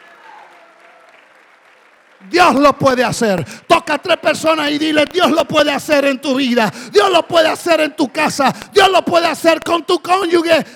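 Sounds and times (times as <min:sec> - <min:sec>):
people clapping: 0:00.0 - 0:03.7, 0:08.4 - 0:10.7
speech: 0:02.2 - 0:10.7.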